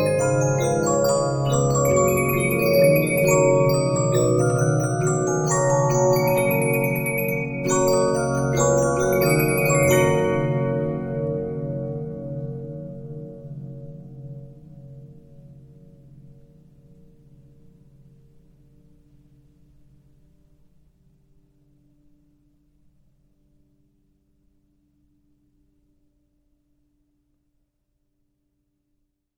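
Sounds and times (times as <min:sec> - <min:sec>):
Regina 15-inch disc music box: 0:00.0 - 0:11.8.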